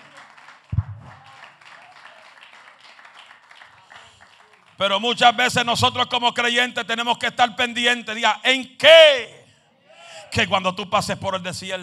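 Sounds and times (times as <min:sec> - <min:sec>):
audience applause: 0:00.0 - 0:04.8
speech: 0:04.8 - 0:09.4, 0:10.3 - 0:11.8.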